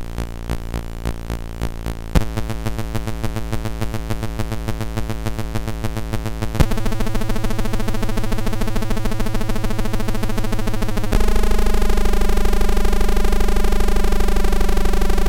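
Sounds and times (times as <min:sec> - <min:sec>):
circuit bent Gameboy noise: 0:00.0 - 0:15.2
circuit bent Gameboy triangle wave tone: 0:11.1 - 0:15.2.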